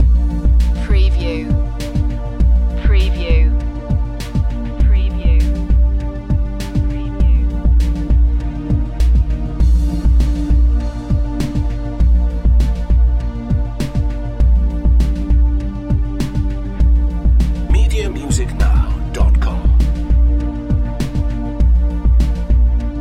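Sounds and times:
space age music loop: 0.0 - 22.9.

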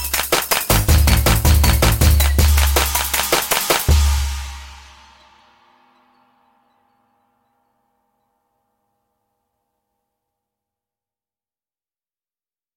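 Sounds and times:
eastern rhythmic pulses: 0.0 - 8.8.

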